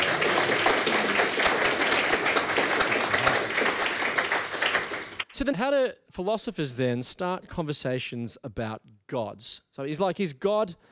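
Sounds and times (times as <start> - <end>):
audience applause: 0.0 - 5.2
speech: 5.4 - 10.9.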